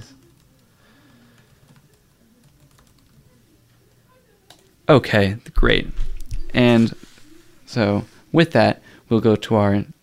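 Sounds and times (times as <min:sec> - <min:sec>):
typing on a computer keyboard: 0:00.0 - 0:03.4
low hum: 0:00.0 - 0:10.0
speech: 0:04.9 - 0:07.1, 0:07.7 - 0:10.0.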